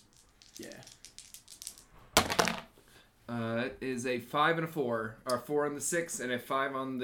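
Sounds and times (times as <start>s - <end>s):
dice tumbling onto a hard surface: 0.0s - 2.7s
speech: 3.3s - 7.0s.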